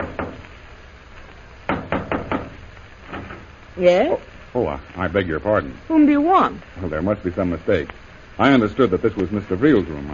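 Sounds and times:
knocking on a hotel room door: 0.0s - 0.4s, 1.7s - 3.4s
speech: 3.8s - 10.1s.

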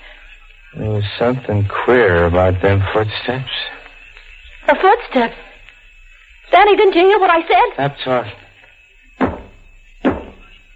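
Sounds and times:
speech: 0.7s - 3.6s, 4.7s - 5.5s, 6.5s - 8.4s
banging knocks on a wall: 9.2s - 10.4s.

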